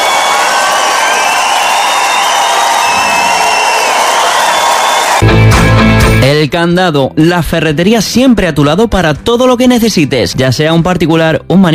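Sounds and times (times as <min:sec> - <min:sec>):
audience applause and cheering: 0:00.0 - 0:06.2
speech: 0:06.4 - 0:11.7.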